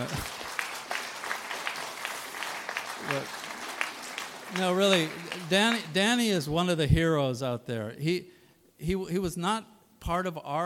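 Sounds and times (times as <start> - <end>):
speech: 0.0 - 0.3, 3.1 - 3.4, 4.5 - 10.6
sparse tepid applause: 0.0 - 6.5.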